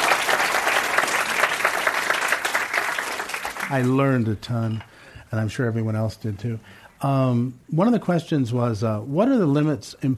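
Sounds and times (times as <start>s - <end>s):
audience applause: 0.0s - 4.1s
speech: 3.7s - 10.1s.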